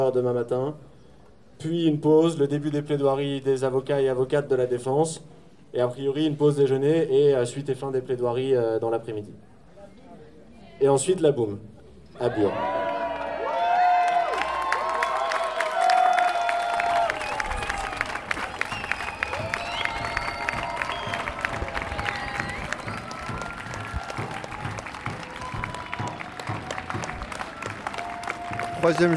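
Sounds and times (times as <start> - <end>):
speech: 0.0 - 0.9, 1.6 - 9.5, 10.8 - 12.8, 28.9 - 29.1
crowd cheering and applauding defendants leaving court: 12.4 - 29.1.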